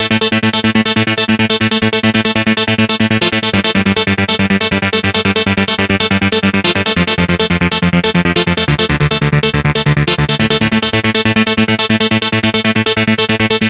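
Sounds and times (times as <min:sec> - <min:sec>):
NRG trance synth arpeggio: 0:00.1 - 0:13.6.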